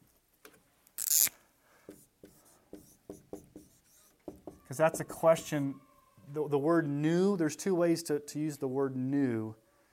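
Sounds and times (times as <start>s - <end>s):
writing words on a board during a scripture lesson: 1.9s - 5.6s
speech: 4.7s - 9.6s.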